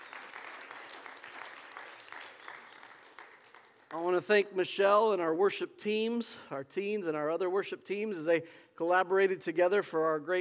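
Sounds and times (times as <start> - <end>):
audience applauding: 0.0 - 4.1
speech: 3.9 - 10.3.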